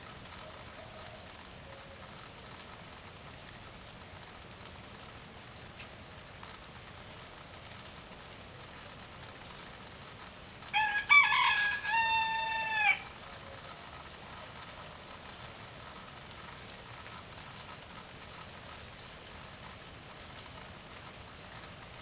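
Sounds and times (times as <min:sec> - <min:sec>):
rooster crowing in light rain: 0:10.7 - 0:13.2.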